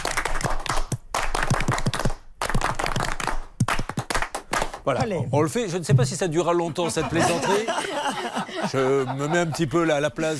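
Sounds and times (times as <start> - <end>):
Russian-style group clapping: 0.0 - 5.1
speech: 4.8 - 10.3
laughter: 6.2 - 10.3.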